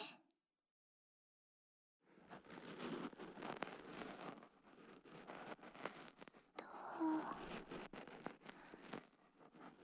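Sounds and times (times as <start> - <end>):
right ear cleaning with a bonten ear pick: 2.3 - 9.8.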